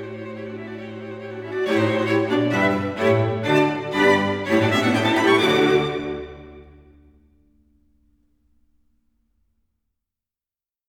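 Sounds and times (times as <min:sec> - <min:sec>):
string quartet playing a fast finale in D major: 0:00.0 - 0:07.0.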